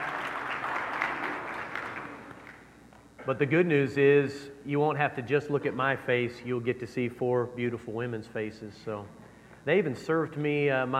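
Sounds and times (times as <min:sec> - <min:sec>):
audience applause: 0:00.0 - 0:02.6
speech: 0:03.2 - 0:10.9.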